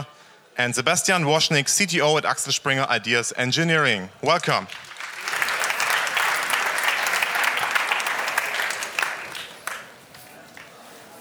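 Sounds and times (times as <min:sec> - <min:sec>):
speech: 0:00.0 - 0:04.9
audience applause: 0:04.5 - 0:10.8.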